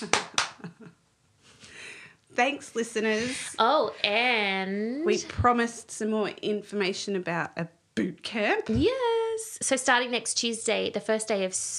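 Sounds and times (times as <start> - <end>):
speech: 0.0 - 0.2, 2.4 - 11.7
hand claps: 0.0 - 0.7.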